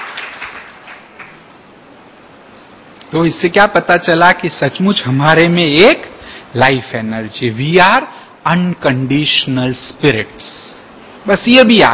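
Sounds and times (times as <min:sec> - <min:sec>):
audience clapping: 0:00.0 - 0:01.5
speech: 0:03.1 - 0:11.9.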